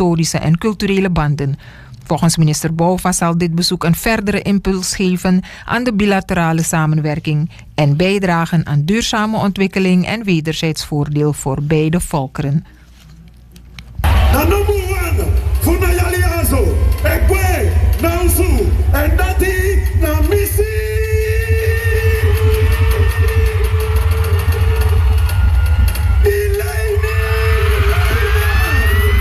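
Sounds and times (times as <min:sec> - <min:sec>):
speech: 0:00.0 - 0:12.8
audience cheering loudly in the Anthony Nesty indoor stadium: 0:14.0 - 0:29.2.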